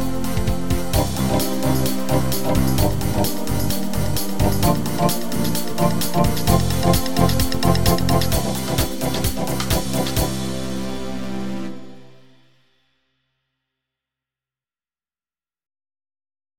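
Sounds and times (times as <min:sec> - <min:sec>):
techno party music: 0:00.0 - 0:12.5.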